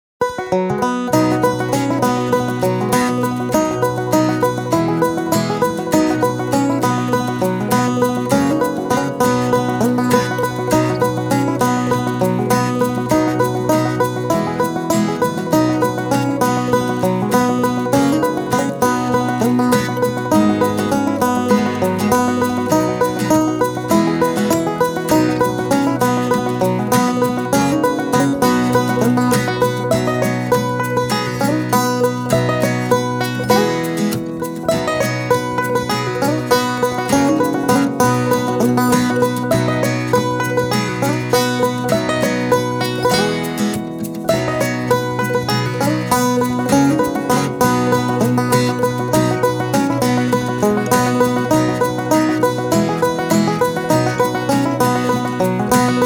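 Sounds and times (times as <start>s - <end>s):
carefree country music: 0.2s - 56.0s.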